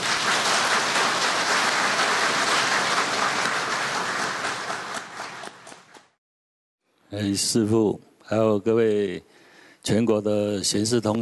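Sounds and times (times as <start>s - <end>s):
crowd applauding: 0.0s - 6.2s
speech: 7.1s - 11.2s.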